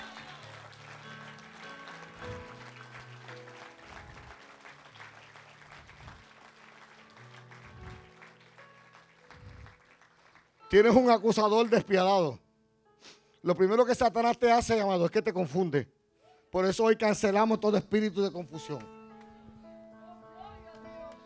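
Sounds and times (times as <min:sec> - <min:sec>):
audience applause: 0:00.0 - 0:10.6
speech: 0:10.7 - 0:12.4, 0:13.4 - 0:19.0.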